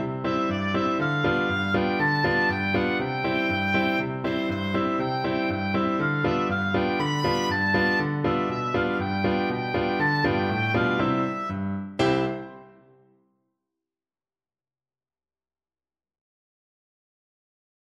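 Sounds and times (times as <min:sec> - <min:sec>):
oboe melody: 0:00.0 - 0:12.8.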